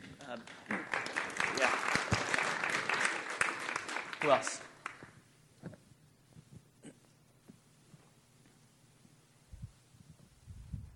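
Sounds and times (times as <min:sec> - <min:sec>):
audience clapping: 0:00.0 - 0:05.2
speech: 0:04.2 - 0:04.7.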